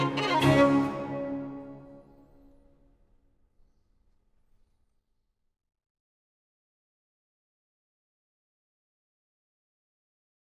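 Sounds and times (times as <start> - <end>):
violin and basso continuo playing an allegro in D major: 0.0 - 2.2.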